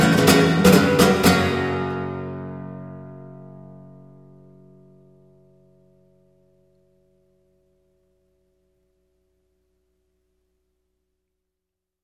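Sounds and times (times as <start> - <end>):
Spanish guitar playing soleares: 0.0 - 4.8.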